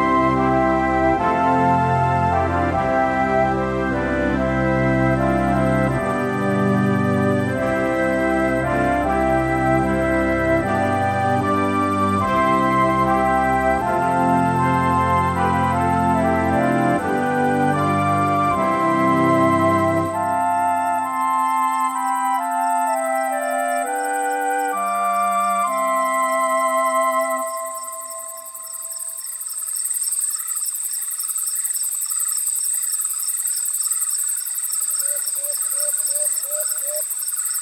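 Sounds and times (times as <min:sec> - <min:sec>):
music: 0:00.0 - 0:29.8
songbirds singing at twilight: 0:05.6 - 0:37.6.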